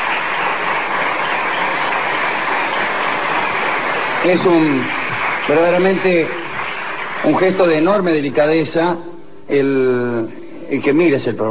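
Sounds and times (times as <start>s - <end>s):
audience applauding: 0.0s - 8.6s
speech: 4.2s - 6.4s, 7.2s - 11.4s.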